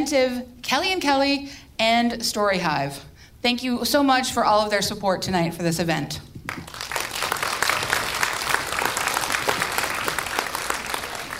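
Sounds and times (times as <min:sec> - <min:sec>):
speech: 0:00.0 - 0:06.7
audience applause: 0:06.5 - 0:11.3.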